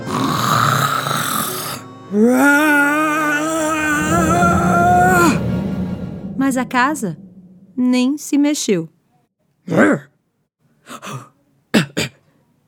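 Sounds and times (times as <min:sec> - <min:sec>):
voice imitating a wolf blowing hard: 0:00.0 - 0:05.4
speech: 0:02.1 - 0:02.9, 0:06.5 - 0:07.2, 0:07.8 - 0:09.0, 0:09.6 - 0:10.1, 0:10.9 - 0:11.3
steady noise: 0:03.9 - 0:08.7.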